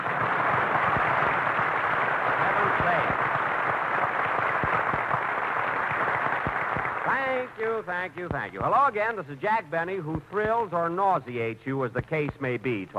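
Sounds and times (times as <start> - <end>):
studio audience applause: 0.0 - 7.9
speech: 7.8 - 12.9.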